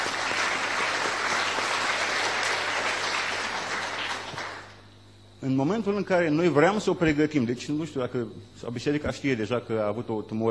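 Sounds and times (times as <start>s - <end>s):
audience applause: 0.0s - 4.8s
speech: 5.4s - 10.4s.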